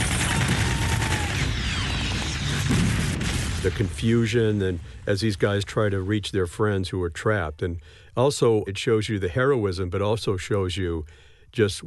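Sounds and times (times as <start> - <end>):
gunfire in a film battle scene: 0.0 - 4.0
speech: 3.6 - 11.8.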